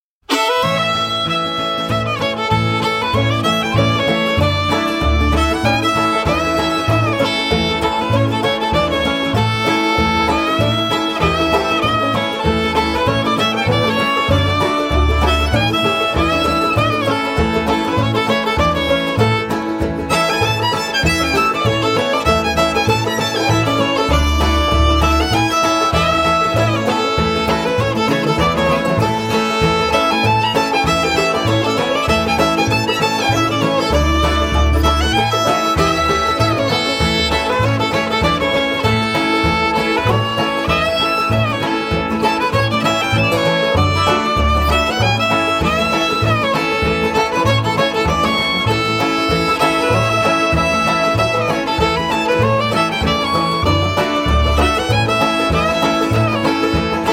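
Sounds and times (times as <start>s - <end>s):
fiddle tune: 0.2s - 57.1s.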